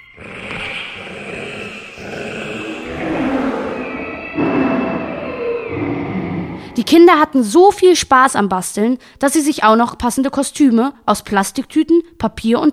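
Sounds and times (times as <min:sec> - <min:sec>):
children growling and roaring in imitation of animals: 0:00.0 - 0:07.0
speech: 0:06.8 - 0:12.7.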